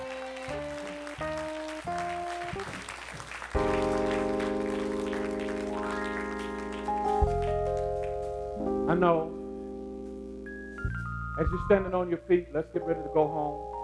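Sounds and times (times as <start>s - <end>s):
audience clapping hands: 0.0s - 8.4s
speech: 8.9s - 9.4s, 11.4s - 13.7s.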